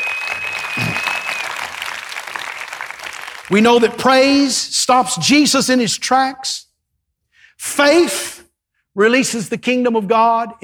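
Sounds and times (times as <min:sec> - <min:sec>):
audience clapping: 0:00.0 - 0:04.0
speech: 0:03.5 - 0:06.7, 0:07.6 - 0:08.3, 0:09.0 - 0:10.6.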